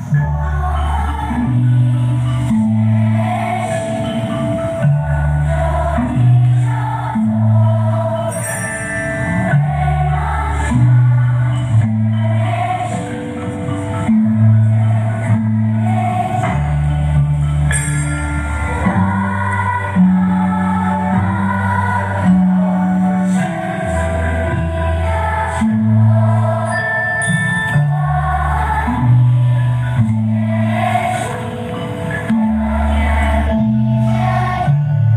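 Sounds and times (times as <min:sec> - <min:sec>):
children singing in Chinese: 0:00.3 - 0:08.6, 0:09.1 - 0:17.7, 0:18.4 - 0:35.1.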